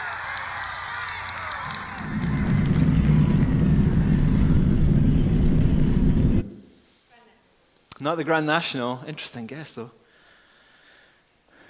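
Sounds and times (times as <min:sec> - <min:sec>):
rocket launch rumble: 0:00.1 - 0:06.8
speech: 0:08.0 - 0:10.0.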